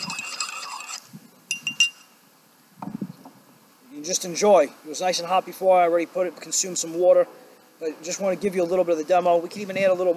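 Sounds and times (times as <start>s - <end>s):
spoon stirring honey into a cup: 0.0s - 2.0s
speech: 4.0s - 10.1s.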